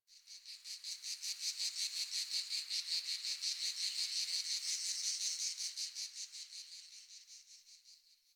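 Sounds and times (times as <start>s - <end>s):
insects: 0.1s - 8.3s.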